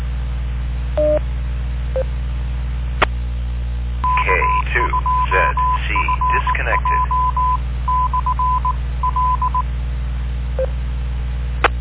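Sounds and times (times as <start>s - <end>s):
steady low hum: 0.0s - 11.7s
telephone dialing touch-tone beeps: 4.0s - 9.6s.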